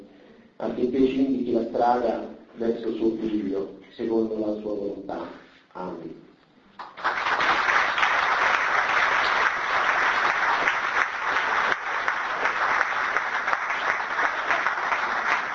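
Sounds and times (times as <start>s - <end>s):
speech: 0.6s - 6.3s
audience applause: 6.8s - 15.5s.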